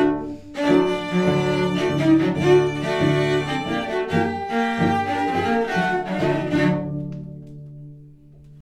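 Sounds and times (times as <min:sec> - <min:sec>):
quartet of four cellos playing: 0:00.0 - 0:08.6.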